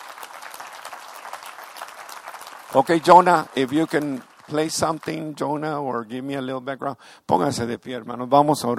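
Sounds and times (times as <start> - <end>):
congregation applause in a church service: 0.0 - 5.9
speech: 2.7 - 8.7.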